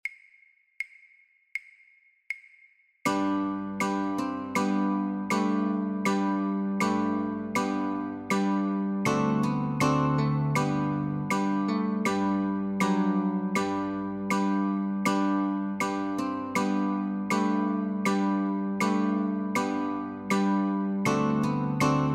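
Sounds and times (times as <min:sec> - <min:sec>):
guitar notes and chords: 0:03.1 - 0:22.1.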